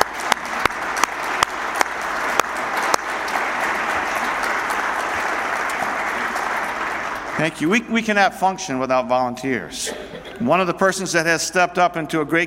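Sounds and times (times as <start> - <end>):
people applauding church volunteers: 0.0 - 8.2
speech: 7.4 - 12.4.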